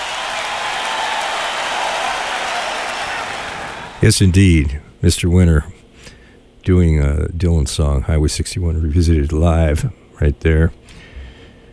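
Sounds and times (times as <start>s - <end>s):
live concert crowd cheering: 0.0s - 4.0s
speech: 4.0s - 5.8s, 6.6s - 11.0s.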